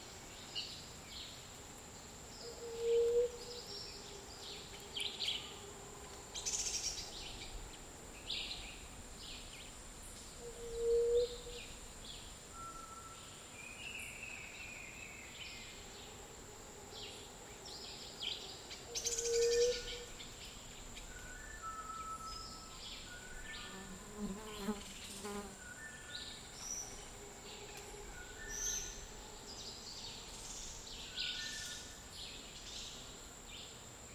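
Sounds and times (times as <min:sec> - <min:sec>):
steady high insect whine in a dry forest: 0:00.0 - 0:34.1.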